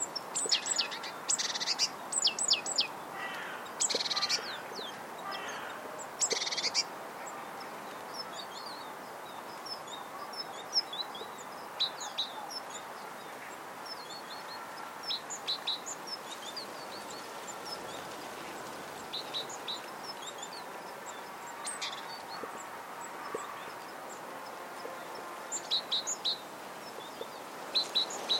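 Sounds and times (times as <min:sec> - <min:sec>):
great tit communication calls: 0:00.0 - 0:28.3.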